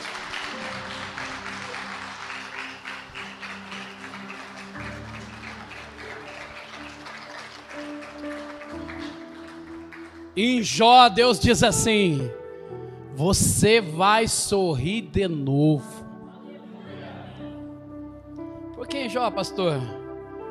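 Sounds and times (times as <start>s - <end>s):
audience applauding: 0.0s - 10.8s
speech: 10.4s - 12.4s, 13.2s - 16.0s, 19.1s - 20.0s.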